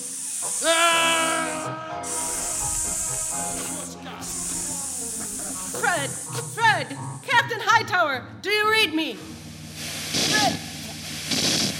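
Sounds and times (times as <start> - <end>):
wavering reedy squeal: 0.0 - 6.3
helium escaping from a punctured balloon: 0.0 - 6.6, 9.8 - 11.7
speech: 7.9 - 9.4.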